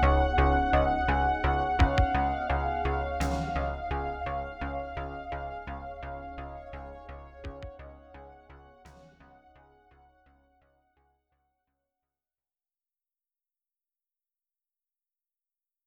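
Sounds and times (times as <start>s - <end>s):
80s ambient space chillwave music: 0.0s - 10.4s.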